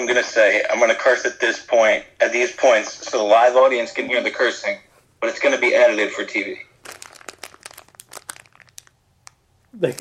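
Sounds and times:
speech: 0:00.0 - 0:06.7, 0:09.8 - 0:09.9
paper being crumpled: 0:06.8 - 0:09.9.

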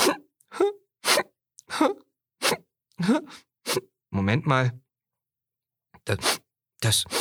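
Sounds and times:
person sniffling: 0:00.0 - 0:03.9, 0:06.2 - 0:06.4
speech: 0:01.8 - 0:02.1, 0:03.0 - 0:04.8, 0:06.1 - 0:07.1.

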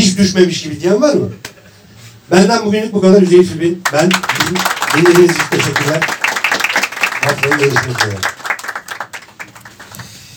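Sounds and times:
speech: 0:00.2 - 0:01.5, 0:02.3 - 0:06.2, 0:07.2 - 0:08.4
small group applause: 0:03.8 - 0:10.3.

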